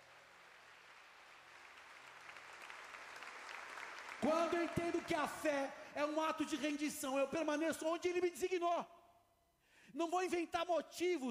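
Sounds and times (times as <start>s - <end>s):
crowd applause: 0.0s - 5.5s
speech: 4.2s - 9.0s, 9.9s - 11.2s.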